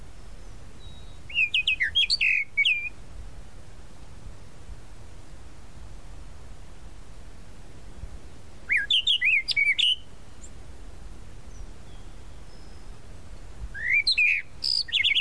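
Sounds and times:
tropical mockingbird song: 0.4s - 3.0s, 8.7s - 10.6s, 11.5s - 13.0s, 13.7s - 15.1s.

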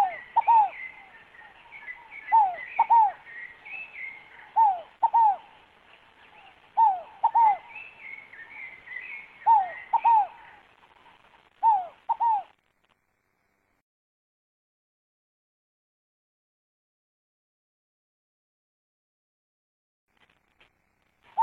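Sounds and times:
scaled dove cooing: 0.0s - 12.6s, 21.3s - 21.4s.

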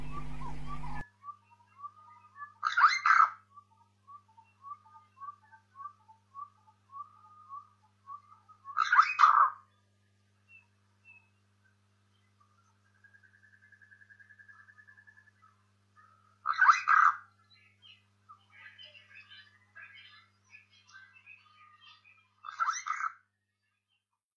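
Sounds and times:
Burchell's starling singing: 0.0s - 9.6s, 16.4s - 23.2s.

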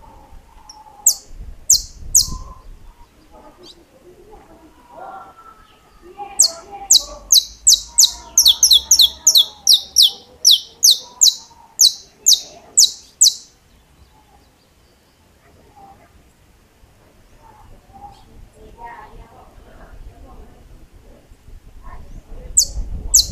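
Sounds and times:
saffron finch chirping: 0.6s - 2.5s, 6.4s - 13.5s, 22.6s - 23.3s.

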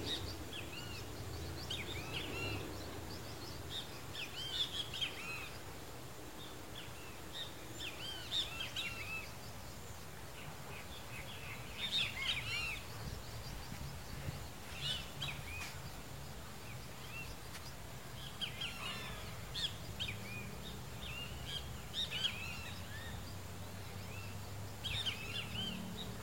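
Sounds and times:
rusty-margined flycatcher singing: 0.0s - 26.2s.

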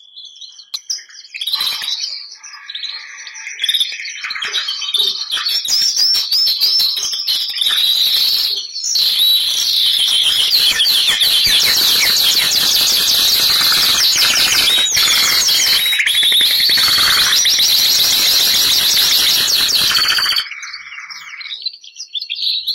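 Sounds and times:
Bernois canary singing: 0.5s - 22.7s.

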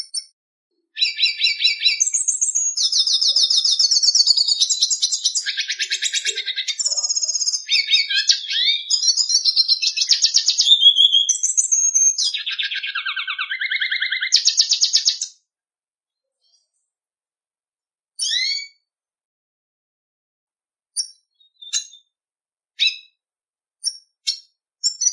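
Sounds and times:
red siskin singing with twittering phrases, chirps, trills and buzzy notes: 1.0s - 15.3s, 18.2s - 18.8s, 21.0s - 22.1s, 22.8s - 23.1s, 23.8s - 25.1s.

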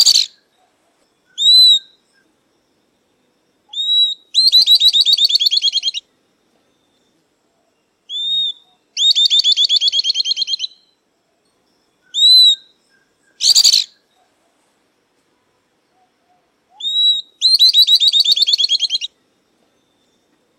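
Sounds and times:
southern beardless-tyrannulet song: 0.0s - 0.6s, 1.3s - 2.3s, 3.7s - 6.0s, 8.1s - 11.0s, 12.1s - 14.4s, 16.7s - 19.2s.

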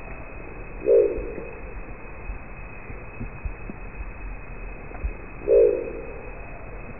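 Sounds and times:
crested owl giving a deep guttural growl: 0.1s - 1.9s, 5.4s - 6.8s.

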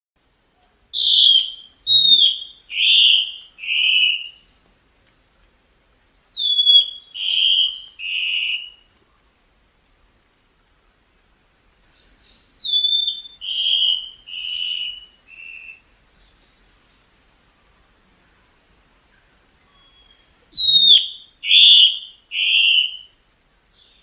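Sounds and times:
black-spotted bare-eye singing whistled notes: 1.0s - 4.3s, 6.4s - 8.8s, 12.6s - 15.8s, 19.8s - 23.1s.

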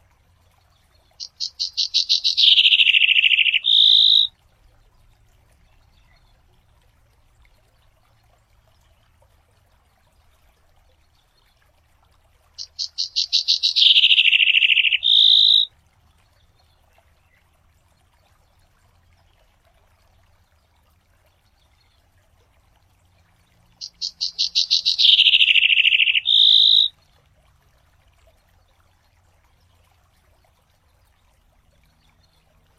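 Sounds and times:
tie bicudo singing: 1.1s - 4.3s, 12.6s - 15.7s, 23.8s - 26.9s.

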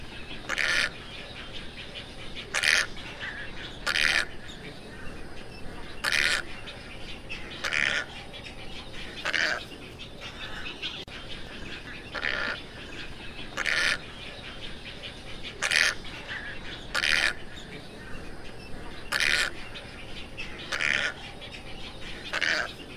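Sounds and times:
tricolored heron squawks: 0.0s - 22.9s.

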